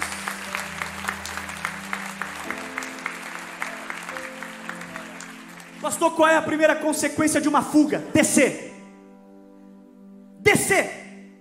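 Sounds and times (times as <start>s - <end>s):
audience applauding: 0.0s - 6.7s
speech: 5.8s - 8.7s.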